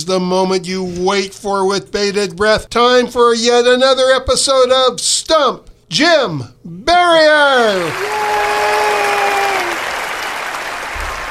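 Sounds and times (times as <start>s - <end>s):
speech: 0.0s - 8.8s
audience applause: 7.8s - 11.2s.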